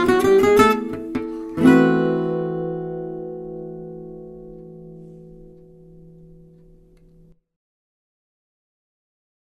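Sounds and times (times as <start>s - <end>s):
manouche gypsy jazz melody in A minor: 0.0s - 7.3s.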